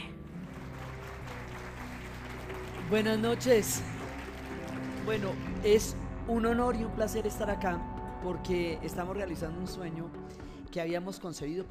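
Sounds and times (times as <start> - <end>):
audience applause: 0.3 - 6.0
speech: 2.9 - 4.0, 5.0 - 11.6.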